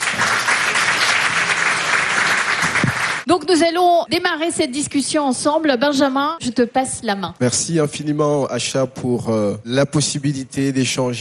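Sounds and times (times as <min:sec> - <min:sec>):
audience applause: 0:00.0 - 0:03.3
speech: 0:03.3 - 0:11.1.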